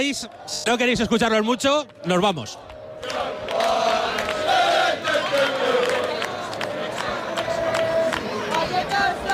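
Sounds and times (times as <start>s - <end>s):
speech: 0.0s - 3.5s
English football fans chanting: 2.6s - 9.3s.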